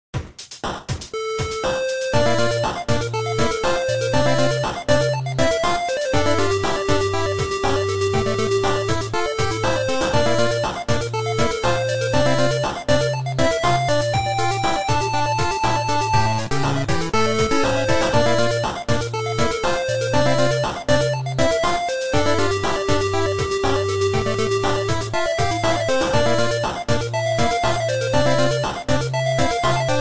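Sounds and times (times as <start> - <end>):
8-bit music: 1.1 - 29.9.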